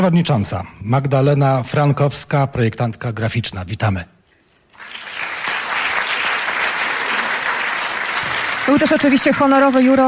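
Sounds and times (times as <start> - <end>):
speech: 0.0 - 4.2, 8.7 - 10.0
audience applause at a radio arts awards ceremony: 4.8 - 10.0.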